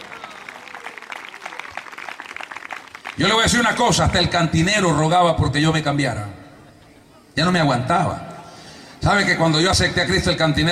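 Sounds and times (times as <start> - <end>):
audience applause: 0.0 - 3.8
speech: 3.2 - 6.4, 7.4 - 8.3, 9.0 - 10.6.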